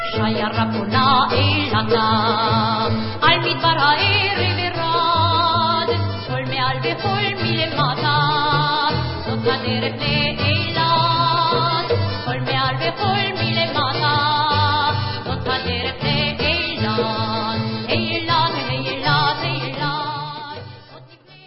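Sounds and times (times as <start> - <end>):
Israeli hora dance vocal: 0.1 - 21.4.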